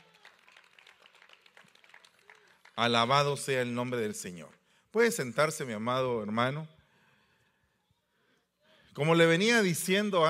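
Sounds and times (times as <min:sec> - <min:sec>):
audience applauding: 0:00.0 - 0:03.1
speech: 0:02.8 - 0:06.8, 0:09.0 - 0:10.2.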